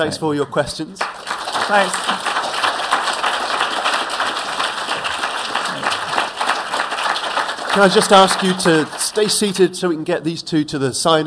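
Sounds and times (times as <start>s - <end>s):
speech: 0.0s - 2.4s, 7.8s - 11.2s
audience applause: 1.0s - 9.7s.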